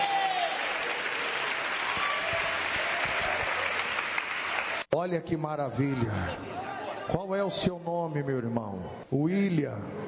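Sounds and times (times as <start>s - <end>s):
audience applauding: 0.0s - 4.9s
speech: 4.9s - 10.0s.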